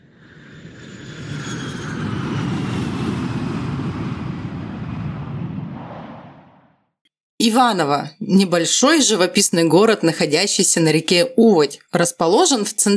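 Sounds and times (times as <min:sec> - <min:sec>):
airplane engine roar: 0:00.0 - 0:06.8
speech: 0:07.4 - 0:12.9.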